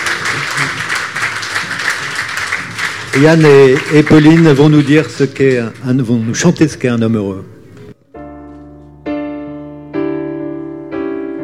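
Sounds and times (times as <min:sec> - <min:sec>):
audience applause: 0:00.0 - 0:06.4
speech: 0:03.1 - 0:07.5.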